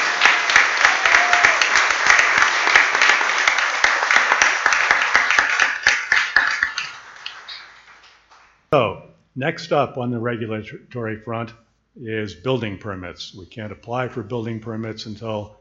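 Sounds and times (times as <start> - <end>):
audience applause: 0.0 - 8.5
speech: 9.4 - 15.5.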